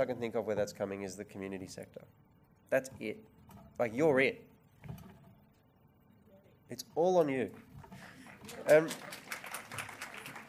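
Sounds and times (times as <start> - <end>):
speech: 0.0 - 5.0, 6.7 - 9.3
nervous audience clapping: 7.5 - 10.4.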